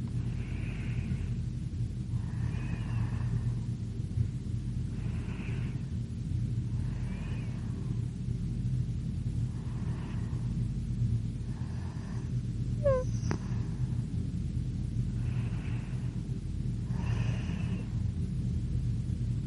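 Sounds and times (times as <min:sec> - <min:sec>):
girl breathing slowly in her sleep: 0:00.0 - 0:08.4, 0:09.2 - 0:14.2, 0:14.9 - 0:18.3
low rumble: 0:00.0 - 0:19.4
high squeak: 0:12.8 - 0:13.1.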